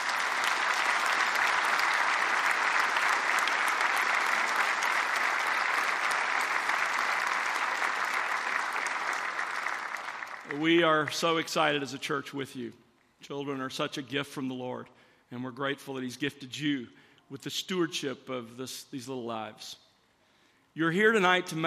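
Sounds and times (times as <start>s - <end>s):
church audience applauding a group: 0.0s - 11.7s
speech: 10.6s - 19.8s, 20.8s - 21.6s.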